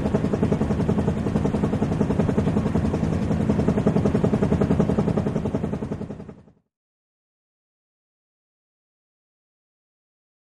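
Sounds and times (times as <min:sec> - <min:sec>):
Huey helicopter hovering: 0:00.0 - 0:06.7.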